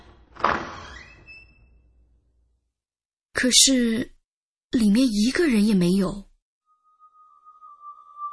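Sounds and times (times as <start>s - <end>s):
door thump as it is pushed open: 0.0s - 1.2s
door squeaking as it is pushed open: 0.0s - 2.0s
speech: 3.4s - 6.3s.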